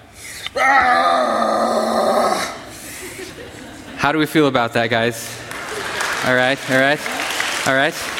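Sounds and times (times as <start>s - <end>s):
speech: 0.6s - 1.0s, 4.0s - 5.4s, 6.2s - 8.1s
person yelling a loud battle cry: 0.6s - 2.6s
laughter: 2.7s - 4.2s, 5.5s - 6.3s.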